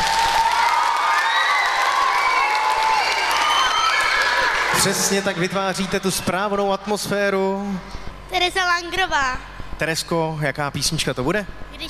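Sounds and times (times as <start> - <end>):
audience applause: 0.0 - 6.0
speech: 4.8 - 11.8.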